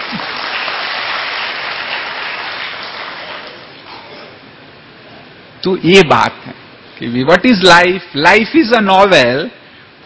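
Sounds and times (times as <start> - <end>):
audience applause: 0.0 - 3.7
speech: 5.6 - 10.0.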